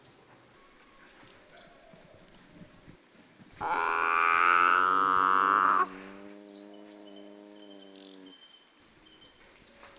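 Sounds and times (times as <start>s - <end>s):
binturong moaning calls: 3.6s - 8.4s.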